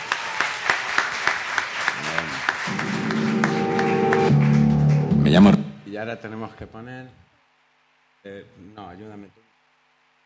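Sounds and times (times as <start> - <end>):
live audience applause at a comedy talk event: 0.0 - 5.7
speech: 5.3 - 7.2, 8.2 - 9.5.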